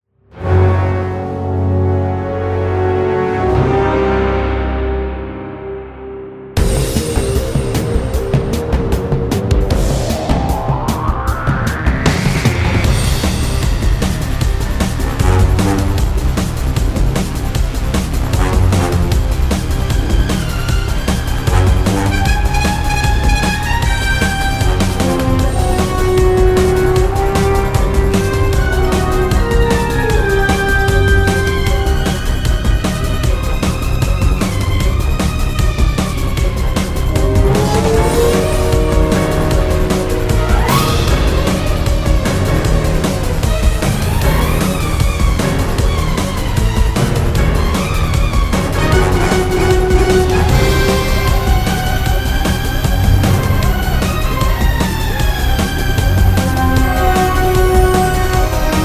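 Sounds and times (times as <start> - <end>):
tense music: 0.2 - 58.8.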